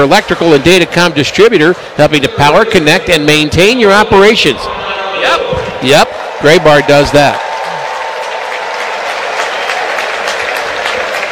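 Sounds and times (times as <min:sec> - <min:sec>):
speech: 0:00.0 - 0:07.5
stadium crowd applauding: 0:05.2 - 0:11.3.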